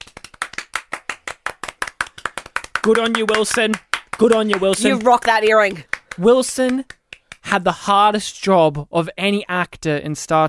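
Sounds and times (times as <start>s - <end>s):
handclaps as applause for actor Wilson Cruz: 0.0s - 7.6s
speech: 2.8s - 10.4s.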